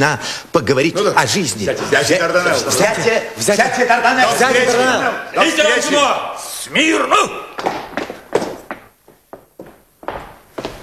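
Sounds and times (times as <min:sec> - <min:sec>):
speech: 0:00.0 - 0:07.8
heavy stomping footsteps: 0:07.6 - 0:10.8.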